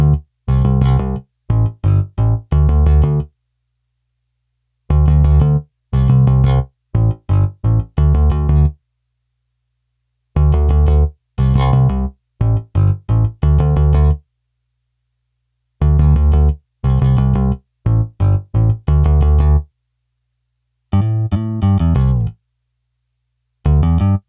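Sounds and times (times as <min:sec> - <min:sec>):
bass: 0:00.0 - 0:03.4, 0:04.9 - 0:08.8, 0:10.3 - 0:14.3, 0:15.8 - 0:19.7, 0:20.9 - 0:22.4, 0:23.6 - 0:24.2.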